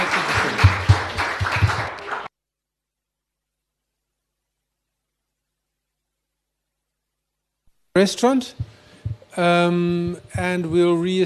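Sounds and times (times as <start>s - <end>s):
audience applause: 0.0s - 2.3s
speech: 8.0s - 11.2s.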